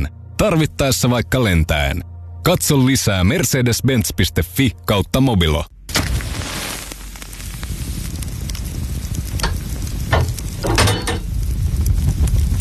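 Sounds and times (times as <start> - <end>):
speech: 0.0 - 5.7
sauna stove heating up with crackle and hiss: 5.9 - 12.5.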